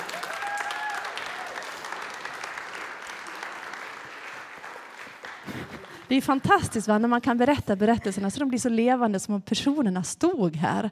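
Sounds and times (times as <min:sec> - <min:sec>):
audience clapping: 0:00.0 - 0:07.3
speech: 0:06.1 - 0:10.9.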